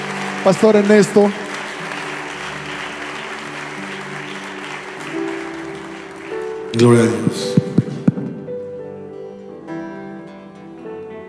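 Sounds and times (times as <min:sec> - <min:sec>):
audience applause: 0:00.0 - 0:08.5
speech: 0:00.4 - 0:01.4, 0:06.8 - 0:07.6.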